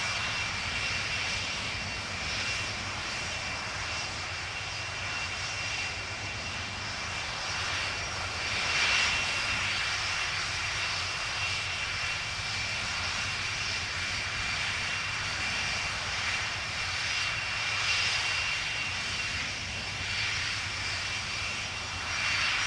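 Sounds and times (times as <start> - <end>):
1989 Boeing 747-400 jumbo jet idling: 0.0 - 22.6.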